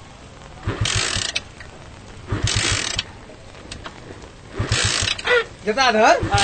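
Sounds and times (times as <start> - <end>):
motorcycle being kick-started: 0.6 - 1.5, 2.3 - 3.1, 4.5 - 5.5, 6.2 - 6.4
speech: 5.6 - 6.4.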